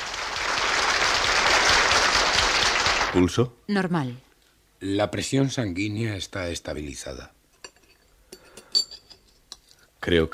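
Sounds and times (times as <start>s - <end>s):
concert audience ovation: 0.0s - 3.3s
speech: 3.1s - 7.4s, 10.0s - 10.3s.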